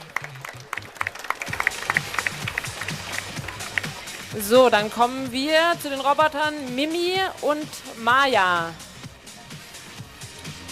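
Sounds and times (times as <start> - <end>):
audience applause: 0.0 - 4.4
speech: 4.4 - 8.9.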